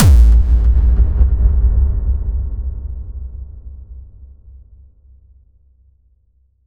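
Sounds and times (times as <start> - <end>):
hard sub bass drop: 0.0 - 3.0
boom: 0.0 - 3.2.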